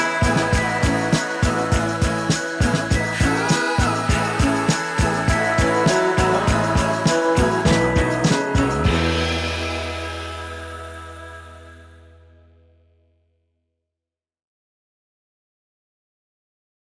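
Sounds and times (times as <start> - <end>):
heartbeat: 0.2 - 9.2.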